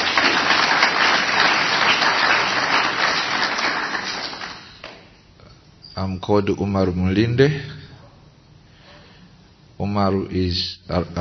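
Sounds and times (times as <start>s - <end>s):
audience applause: 0.0s - 5.1s
speech: 6.0s - 7.8s, 9.8s - 11.2s.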